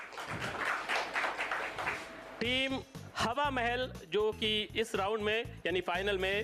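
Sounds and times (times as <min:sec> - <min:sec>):
audience applause for a trophy presentation: 0:00.0 - 0:02.4
speech: 0:02.4 - 0:06.4.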